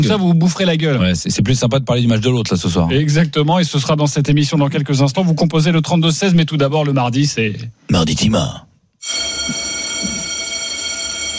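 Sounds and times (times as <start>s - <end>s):
speech: 0.0s - 9.6s
bell sound effect ringing: 9.0s - 11.3s.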